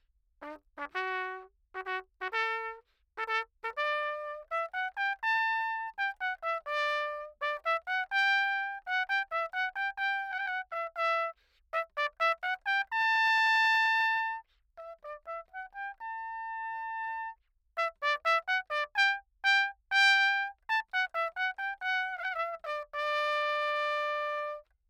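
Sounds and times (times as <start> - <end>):
anechoic trumpet piece: 0.4 - 24.7.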